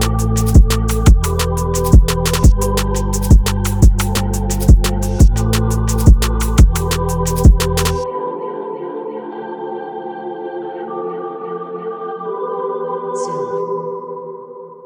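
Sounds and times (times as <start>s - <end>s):
drum and bass music at 174 BPM: 0.0s - 8.0s.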